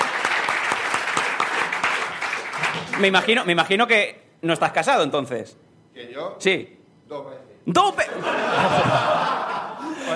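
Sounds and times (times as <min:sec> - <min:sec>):
audience applause: 0:00.0 - 0:03.5
speech: 0:03.0 - 0:10.1
laughter: 0:07.9 - 0:10.1.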